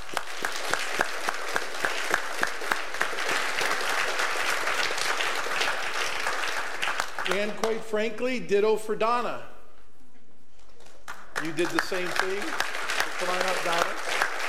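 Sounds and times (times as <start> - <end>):
audience applause: 0.0 - 7.7, 11.1 - 14.4
speech: 7.4 - 9.5, 11.4 - 13.8.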